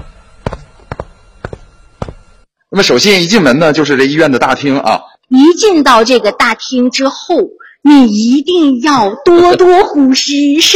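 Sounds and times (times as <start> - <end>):
footsteps walking into a hospital: 0.0 - 2.5
speech: 2.8 - 5.0, 5.6 - 10.7.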